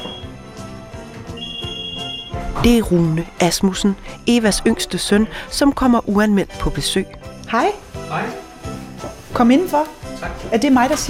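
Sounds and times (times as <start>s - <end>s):
doorbell ringing: 1.4s - 2.4s
speech: 2.6s - 8.4s, 9.4s - 11.0s.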